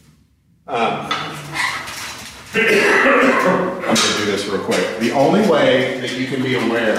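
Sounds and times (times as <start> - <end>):
speech: 0.7 - 1.1, 2.6 - 6.9
whiteboard rattling during an attempt to flip it: 1.1 - 2.8, 3.4 - 6.9.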